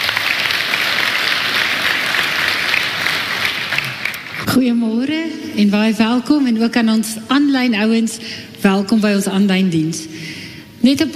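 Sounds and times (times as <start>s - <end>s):
audience applauding, clapping hands: 0.0s - 4.4s
speech: 4.5s - 11.1s.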